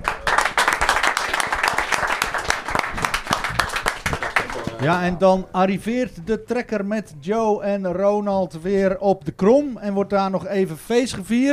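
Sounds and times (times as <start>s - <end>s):
applause: 0.0s - 5.0s
speech: 4.8s - 11.5s.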